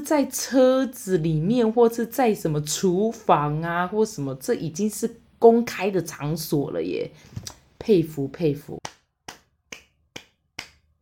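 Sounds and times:
speech: 0:00.0 - 0:08.8
hand clapping: 0:08.8 - 0:11.0.

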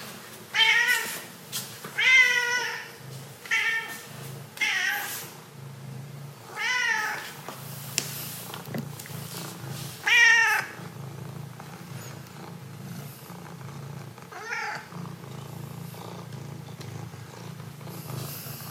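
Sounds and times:
cat meowing to ask for water: 0:00.5 - 0:01.2, 0:02.0 - 0:03.9, 0:06.5 - 0:07.2, 0:10.0 - 0:10.8, 0:14.3 - 0:14.9.

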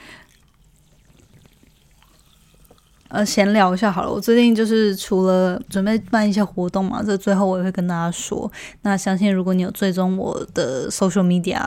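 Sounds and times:
water pouring: 0:00.0 - 0:07.6
speech: 0:03.1 - 0:11.6.

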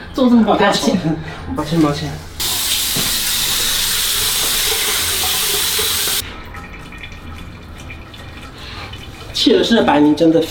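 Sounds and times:
speech: 0:00.2 - 0:02.3, 0:09.4 - 0:10.4
running tap water while washing face: 0:02.4 - 0:10.4.

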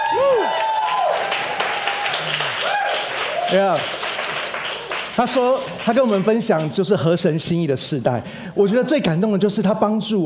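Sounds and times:
audience applause: 0:00.0 - 0:06.8
speech: 0:03.5 - 0:04.0, 0:05.2 - 0:10.2.

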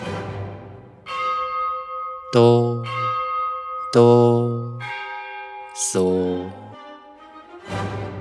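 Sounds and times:
funeral bell tolling in a symphony: 0:01.0 - 0:06.8
speech: 0:02.3 - 0:03.0, 0:03.9 - 0:05.0, 0:05.8 - 0:06.6.

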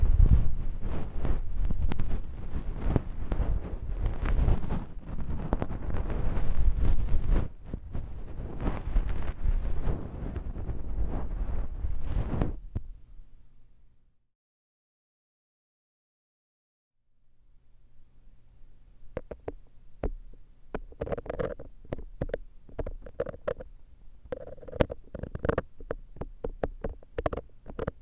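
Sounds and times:
left-ear massage rubbing: 0:00.0 - 0:12.6, 0:19.1 - 0:23.7, 0:24.3 - 0:28.0
taps: 0:19.2 - 0:23.6, 0:24.3 - 0:28.0.

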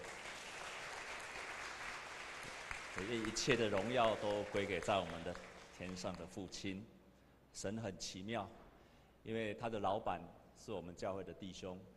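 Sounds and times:
audience applause: 0:00.0 - 0:05.8
speech: 0:03.0 - 0:07.0, 0:07.6 - 0:08.6, 0:09.2 - 0:11.9.

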